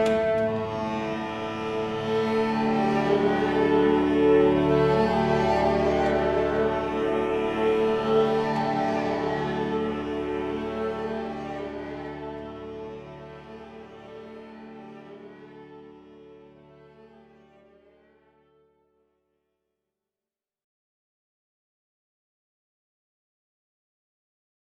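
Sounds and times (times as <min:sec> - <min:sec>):
accordion playing: 0:00.0 - 0:15.3.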